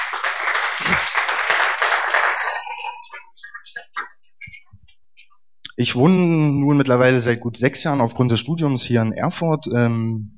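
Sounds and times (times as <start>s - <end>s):
audience applause: 0.0s - 3.9s
laughter: 0.7s - 5.3s
speech: 5.8s - 10.3s.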